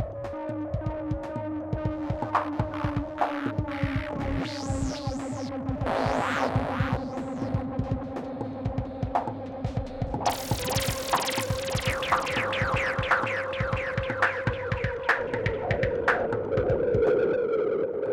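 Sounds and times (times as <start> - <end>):
noise music jam: 0.0 - 18.1.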